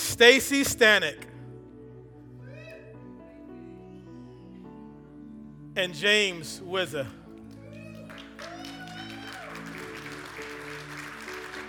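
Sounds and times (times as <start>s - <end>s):
speech: 0.1s - 1.3s, 5.8s - 7.2s
audience applause: 7.5s - 11.6s.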